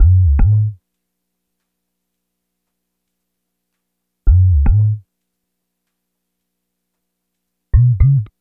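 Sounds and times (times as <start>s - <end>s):
sub bass: 0.0s - 0.8s, 4.3s - 5.0s, 7.8s - 8.3s.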